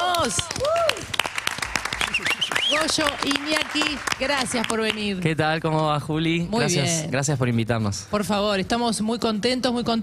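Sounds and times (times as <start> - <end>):
audience applause: 0.0 - 5.1
speech: 0.2 - 1.0, 2.8 - 10.0
cheering voices and whoops: 0.4 - 1.1.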